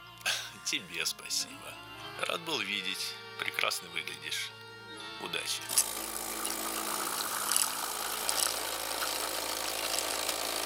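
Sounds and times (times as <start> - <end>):
speech: 0.7 - 4.6, 5.2 - 6.2
new coffee machine running: 5.7 - 10.6.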